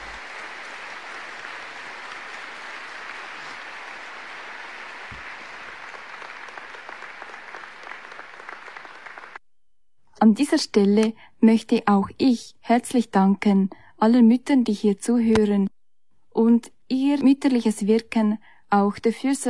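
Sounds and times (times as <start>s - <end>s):
audience applause: 0.0s - 9.4s
speech: 10.2s - 15.7s, 16.4s - 19.4s.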